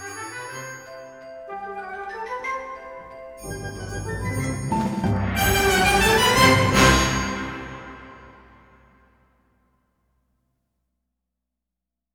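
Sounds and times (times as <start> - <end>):
flirtatious waltz: 0.0 - 8.6.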